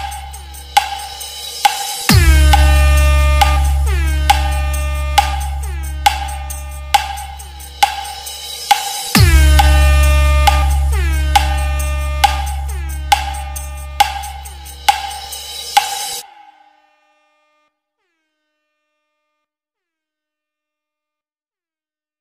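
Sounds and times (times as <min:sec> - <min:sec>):
hard DJ vibration beat: 0:00.0 - 0:16.3
train horn: 0:02.2 - 0:07.5, 0:09.2 - 0:14.6.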